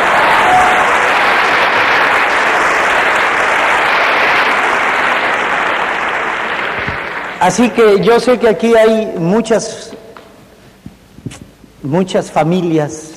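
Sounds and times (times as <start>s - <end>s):
live event audience applause: 0.0s - 7.8s
speech: 7.4s - 9.9s, 11.3s - 13.1s.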